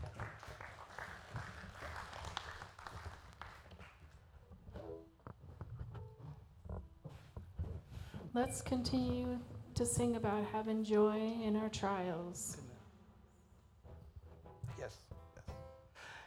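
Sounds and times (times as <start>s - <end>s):
audience clapping: 0.0s - 4.3s
speech: 8.4s - 12.7s.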